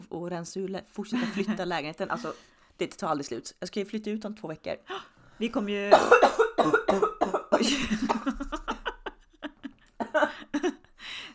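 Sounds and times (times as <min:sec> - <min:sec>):
speech: 0:00.1 - 0:08.5
person coughing on an inhaled cake crumb: 0:05.9 - 0:08.4, 0:10.0 - 0:10.4
laughter: 0:07.6 - 0:10.8.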